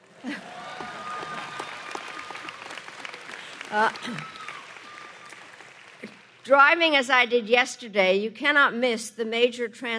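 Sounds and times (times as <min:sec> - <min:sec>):
large audience applauding in a big hall: 0:00.0 - 0:06.4
speech: 0:03.7 - 0:04.4, 0:06.5 - 0:09.9.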